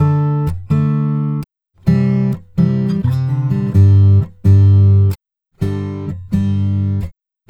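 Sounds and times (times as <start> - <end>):
acoustic Latin guitar in G major: 0.0 - 7.4.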